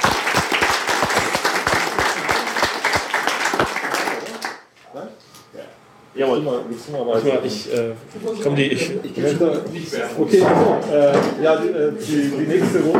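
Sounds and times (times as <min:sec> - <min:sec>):
crowd applauding: 0:00.0 - 0:04.7
speech: 0:06.2 - 0:12.9.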